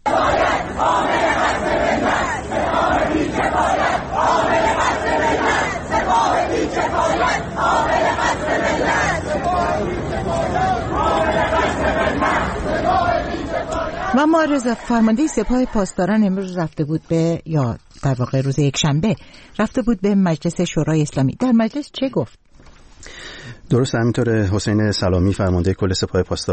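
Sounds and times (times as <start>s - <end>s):
students chanting slogans at universities in Tehran: 0.0s - 16.4s
speech: 14.2s - 22.4s, 23.0s - 26.5s.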